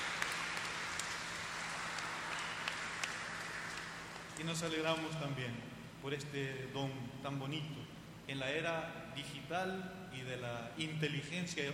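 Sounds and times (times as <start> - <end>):
applause: 0.0 - 4.7
speech: 4.4 - 11.7.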